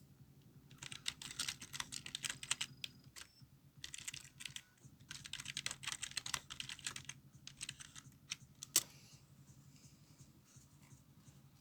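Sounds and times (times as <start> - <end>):
office sound effects: 0.7 - 3.3, 3.9 - 8.9.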